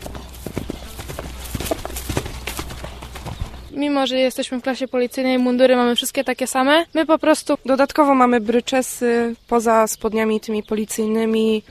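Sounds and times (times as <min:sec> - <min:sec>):
horses galloping: 0:00.0 - 0:03.8
speech: 0:03.8 - 0:11.6.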